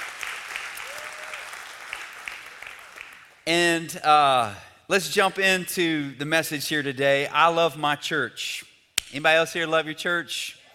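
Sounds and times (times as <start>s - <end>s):
church congregation applauding to welcome online viewers: 0.0s - 3.4s
speech: 3.5s - 10.6s.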